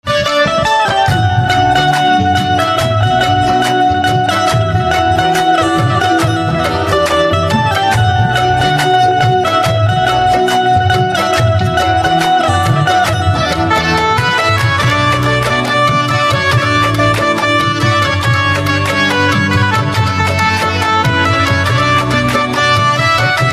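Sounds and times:
banjo instrumental ringtone: 0:00.0 - 0:23.5.

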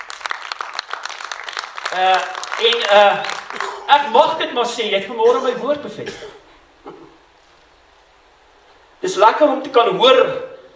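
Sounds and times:
crowd clapping: 0:00.0 - 0:04.3
speech: 0:01.9 - 0:07.0, 0:09.2 - 0:10.5.

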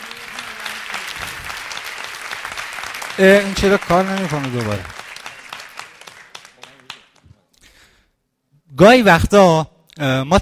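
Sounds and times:
audience applause: 0:00.0 - 0:07.4
speech: 0:03.2 - 0:05.0, 0:08.8 - 0:10.3.

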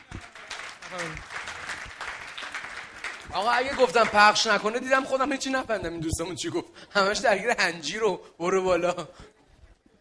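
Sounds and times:
audience applause: 0:00.0 - 0:04.9
speech: 0:00.9 - 0:01.4, 0:03.3 - 0:09.3.

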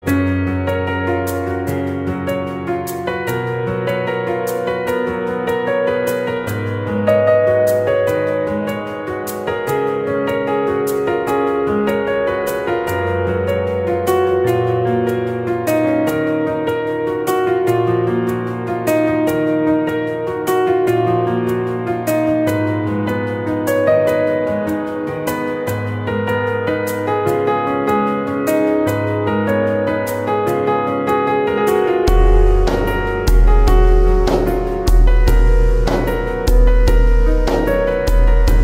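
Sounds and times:
piano: 0:00.0 - 0:38.6.

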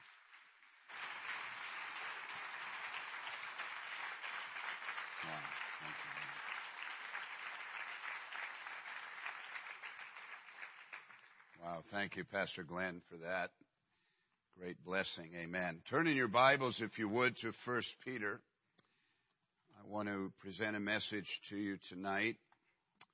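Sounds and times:
audience applause: 0:00.0 - 0:11.6
speech: 0:11.6 - 0:13.6, 0:14.6 - 0:18.5, 0:19.9 - 0:22.4.

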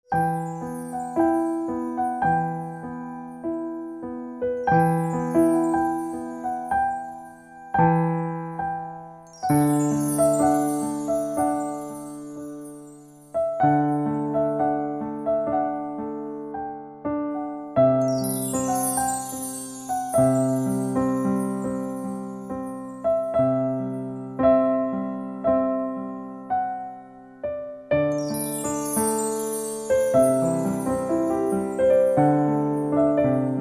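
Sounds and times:
piano: 0:00.0 - 0:33.5.

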